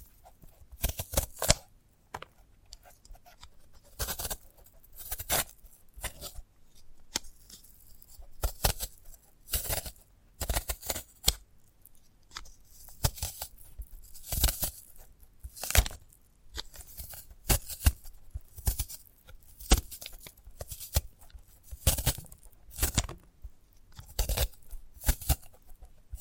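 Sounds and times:
sprouted coconut broken apart, crackling and snapping: 0:00.7 - 0:01.7, 0:08.4 - 0:11.5, 0:12.3 - 0:26.2.

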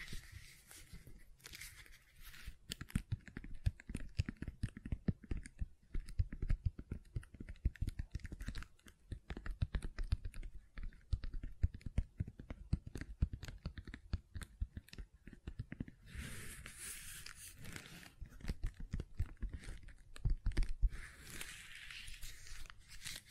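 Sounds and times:
dense rapid tapping and soft clicking on silicone: 0:02.4 - 0:16.1, 0:18.1 - 0:21.1.

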